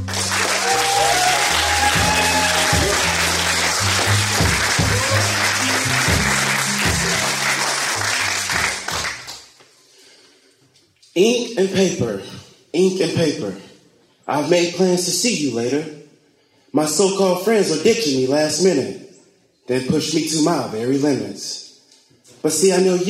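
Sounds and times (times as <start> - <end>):
audience clapping: 0.0 - 9.6
speech: 11.2 - 13.7, 14.3 - 16.0, 16.7 - 19.0, 19.7 - 21.6, 22.4 - 23.0.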